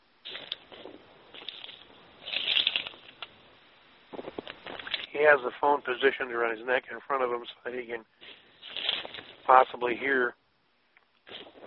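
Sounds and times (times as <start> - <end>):
footsteps of a person walking: 0.2 - 3.3, 4.1 - 5.1, 8.2 - 9.5, 11.2 - 11.6
speech: 5.2 - 8.4, 9.5 - 10.4.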